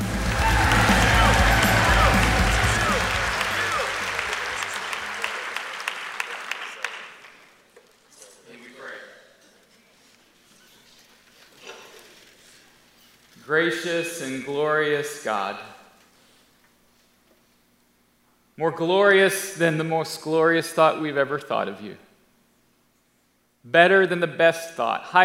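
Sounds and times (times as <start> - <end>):
people cheering: 0.0 - 7.3
church congregation applauding a guest speaker: 0.0 - 7.7
speech: 13.6 - 15.7, 18.6 - 22.0, 23.6 - 25.2.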